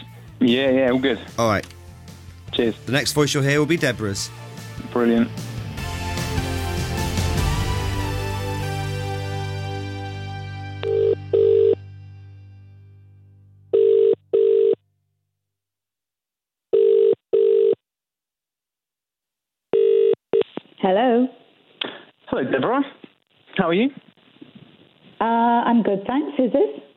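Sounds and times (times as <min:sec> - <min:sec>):
speech: 0:00.4 - 0:01.8, 0:02.6 - 0:05.5, 0:22.4 - 0:22.9, 0:23.6 - 0:24.1, 0:25.2 - 0:26.8
resonant chord: 0:03.8 - 0:14.4
telephone ringing in double-ring pattern: 0:10.8 - 0:11.8, 0:13.7 - 0:14.8, 0:16.7 - 0:17.8, 0:19.7 - 0:20.2.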